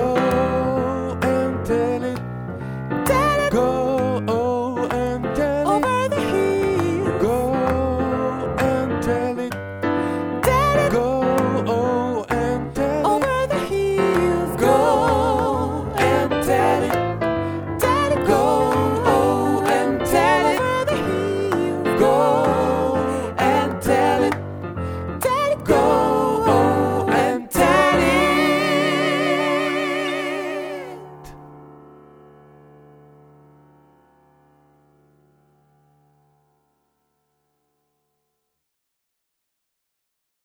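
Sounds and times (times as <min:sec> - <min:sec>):
gospel tutti ensemble music: 0:00.0 - 0:31.6.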